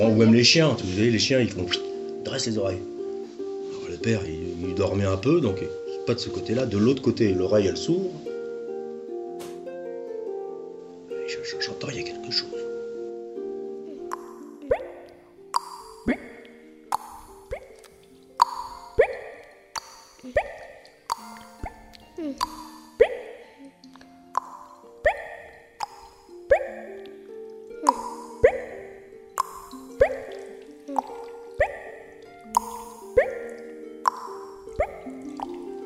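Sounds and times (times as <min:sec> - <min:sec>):
speech: 0:00.0 - 0:03.0, 0:03.9 - 0:08.2
water drops falling in a cave: 0:14.1 - 0:35.8.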